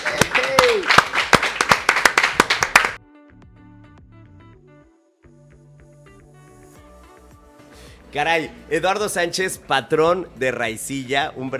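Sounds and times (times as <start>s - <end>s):
audience applause: 0.0s - 3.0s
speech: 8.1s - 11.5s.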